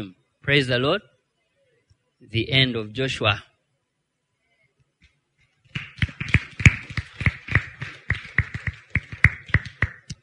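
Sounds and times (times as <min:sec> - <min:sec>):
speech: 0:00.0 - 0:01.1, 0:02.2 - 0:03.5
audience clapping hands: 0:05.8 - 0:10.2.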